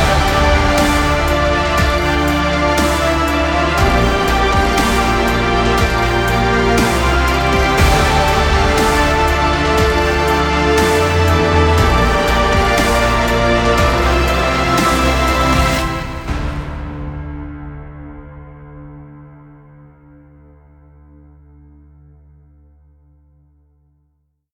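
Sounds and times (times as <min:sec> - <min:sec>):
heroic dubstep music: 0:00.0 - 0:17.9.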